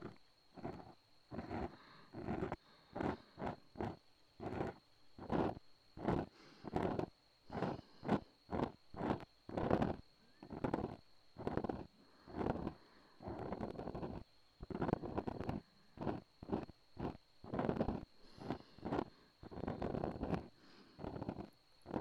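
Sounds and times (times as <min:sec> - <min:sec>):
ear cleaning: 0:00.0 - 0:22.0
breathing into the left ear: 0:00.6 - 0:04.0, 0:05.4 - 0:08.7, 0:11.6 - 0:14.2, 0:17.0 - 0:22.0.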